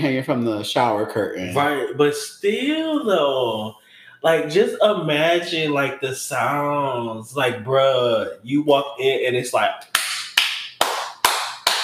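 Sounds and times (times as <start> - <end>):
speech: 0.0 - 10.0
imitated clapping: 9.8 - 11.8.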